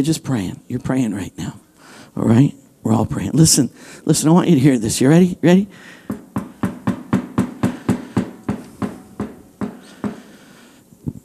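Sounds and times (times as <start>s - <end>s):
speech: 0.0s - 1.6s, 2.2s - 6.2s
hollow knocks on a door: 6.1s - 10.2s.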